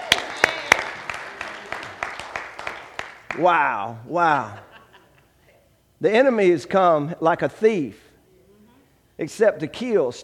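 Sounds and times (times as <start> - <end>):
audience hand clapping in praise: 0.0 - 3.6
speech: 3.3 - 4.7, 6.0 - 8.0, 9.2 - 10.2
laughter: 4.1 - 5.6.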